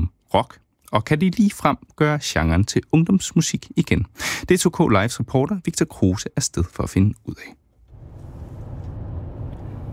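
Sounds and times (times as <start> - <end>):
speech: 0.3 - 7.6
car driving from DR-byen toward Kirke Hyllinge, heard from inside: 7.8 - 9.9.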